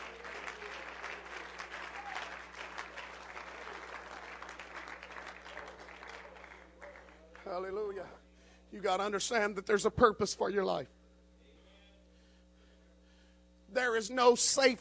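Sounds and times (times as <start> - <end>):
audience clapping hands: 0.0 - 8.2
speech: 7.5 - 11.0, 14.0 - 14.7.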